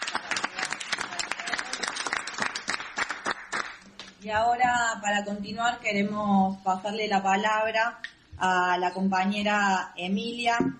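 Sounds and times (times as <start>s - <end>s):
crowd applauding: 0.0s - 3.8s
speech: 4.2s - 10.7s.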